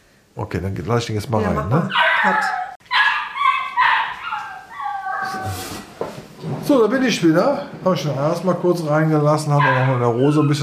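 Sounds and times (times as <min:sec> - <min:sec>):
speech: 0:00.4 - 0:02.6, 0:05.4 - 0:10.6
puppy whining: 0:01.3 - 0:05.9, 0:09.6 - 0:10.6
puppy barking and yipping: 0:01.4 - 0:05.4, 0:09.6 - 0:10.6.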